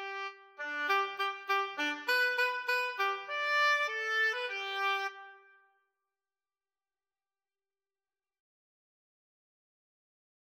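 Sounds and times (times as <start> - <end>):
oboe: 0.0 - 5.6
clarinet: 0.0 - 5.7.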